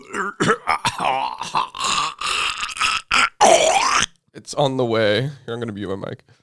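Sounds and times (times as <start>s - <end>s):
raspy coughing and throat-clearing: 0.0s - 4.1s
speech: 0.2s - 0.6s, 4.5s - 6.4s.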